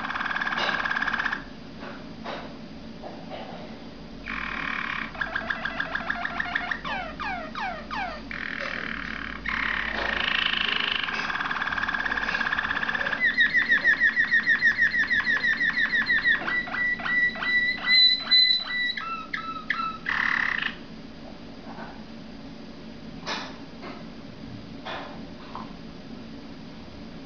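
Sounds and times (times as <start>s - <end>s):
Waterslager canary trilling song: 0.0s - 1.5s, 4.2s - 20.9s.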